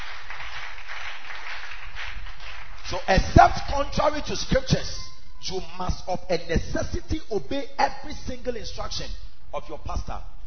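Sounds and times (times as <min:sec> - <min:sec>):
church congregation clapping during a sermon: 0:00.0 - 0:04.6
speech: 0:02.9 - 0:10.4.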